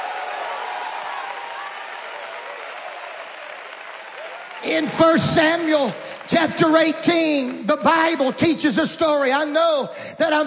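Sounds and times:
audience applause: 0:00.0 - 0:08.2
speech: 0:04.6 - 0:10.4.

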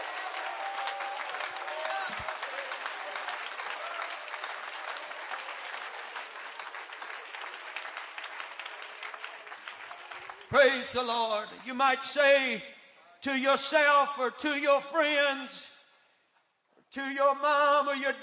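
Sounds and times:
audience clapping hands: 0:00.0 - 0:11.8
speech: 0:10.5 - 0:15.7, 0:16.9 - 0:18.2.

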